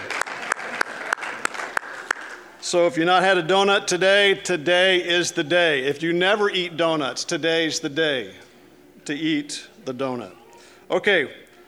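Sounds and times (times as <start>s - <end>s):
audience clapping: 0.0s - 2.6s
speech: 2.7s - 8.4s, 9.1s - 11.4s.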